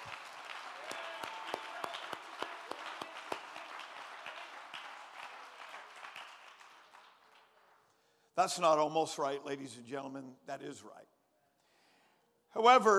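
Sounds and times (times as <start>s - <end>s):
audience applause: 0.0s - 7.8s
speech: 8.4s - 11.2s, 12.5s - 12.9s.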